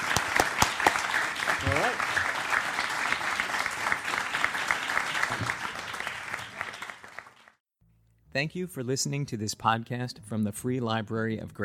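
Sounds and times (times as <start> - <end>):
audience applause: 0.0 - 7.6
speech: 8.4 - 11.6.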